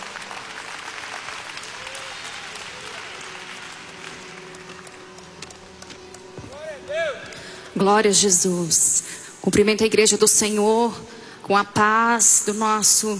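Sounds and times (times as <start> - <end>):
audience applause: 0.0 - 7.6
scattered voices and cheers: 1.3 - 4.5
speech: 6.9 - 13.1.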